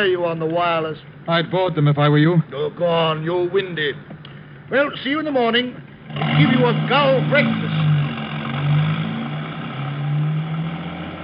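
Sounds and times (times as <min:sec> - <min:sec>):
speech: 0:00.0 - 0:04.1, 0:04.7 - 0:07.8
car driving away: 0:05.6 - 0:11.2.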